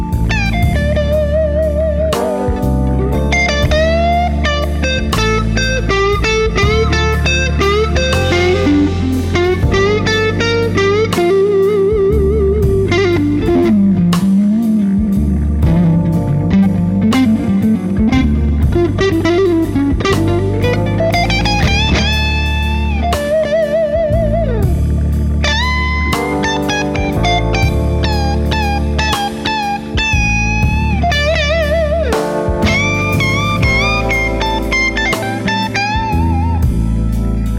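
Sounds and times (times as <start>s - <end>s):
clean slow blues guitar: 0.0s - 37.5s.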